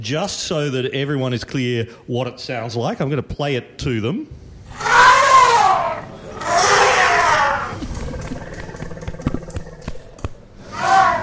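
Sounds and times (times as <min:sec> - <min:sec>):
speech: 0:00.0 - 0:04.9
elephant trumpeting: 0:04.7 - 0:11.2.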